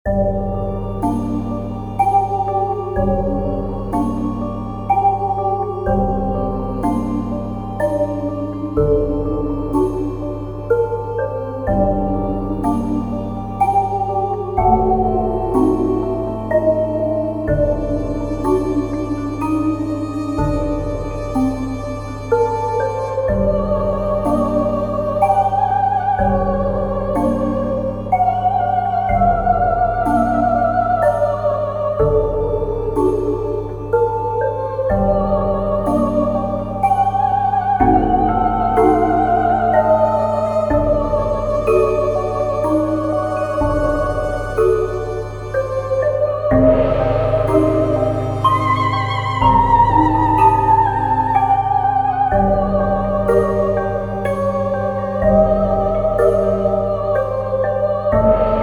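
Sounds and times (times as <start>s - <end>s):
spooky mystic voice melody: 0.0s - 58.6s.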